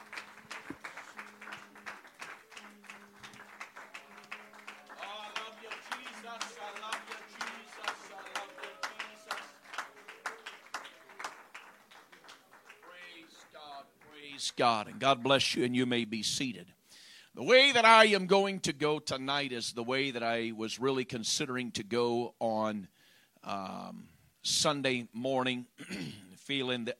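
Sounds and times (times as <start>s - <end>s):
audience clapping hands: 0.0s - 16.0s
speech: 14.6s - 16.8s, 17.4s - 26.9s.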